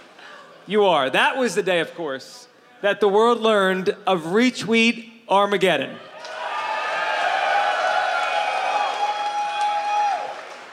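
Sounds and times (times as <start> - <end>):
speech: 0.7 - 6.1
crowd cheering and clapping: 6.1 - 10.7.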